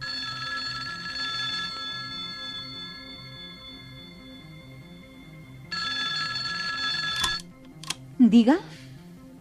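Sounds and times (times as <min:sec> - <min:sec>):
telephone ringing: 0:00.0 - 0:07.5
speech: 0:08.2 - 0:08.8.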